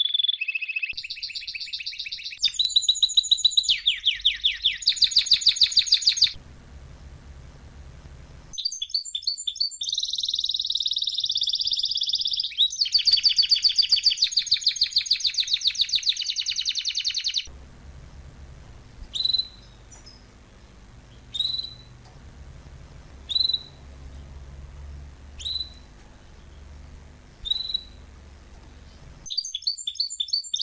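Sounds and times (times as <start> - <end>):
canary song: 0.0 - 30.6
low hum: 6.4 - 8.6, 17.5 - 29.3.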